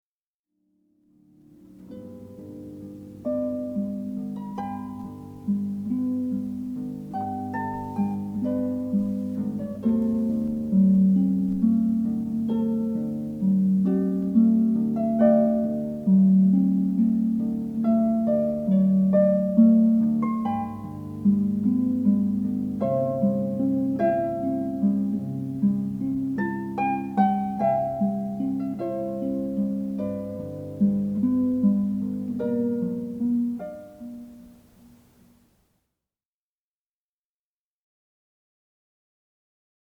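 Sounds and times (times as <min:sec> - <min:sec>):
harp: 0:01.2 - 0:35.1.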